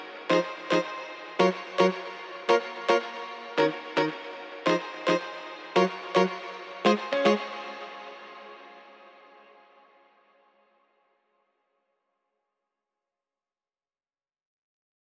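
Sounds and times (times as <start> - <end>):
Afro guitar melody loop in A minor: 0.0 - 8.6.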